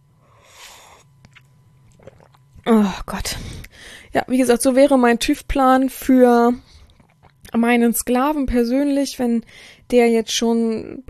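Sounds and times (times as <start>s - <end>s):
sip of coffee: 0.6s - 2.5s
speech: 2.8s - 6.8s, 7.5s - 11.0s.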